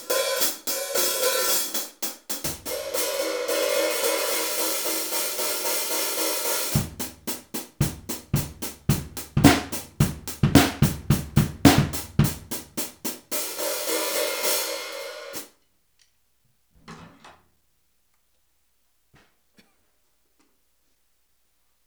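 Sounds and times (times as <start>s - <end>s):
Zildjian hi-hat cymbals: 0.0s - 15.5s.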